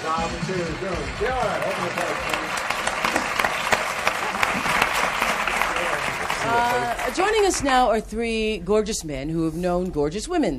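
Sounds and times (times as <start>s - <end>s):
studio audience applause: 0.0s - 7.8s
speech: 0.1s - 2.4s, 6.5s - 10.5s.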